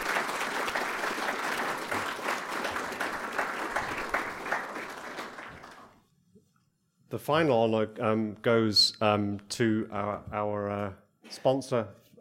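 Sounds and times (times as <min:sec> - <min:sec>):
audience applause for a panel session: 0:00.0 - 0:06.0
speech: 0:07.1 - 0:12.0.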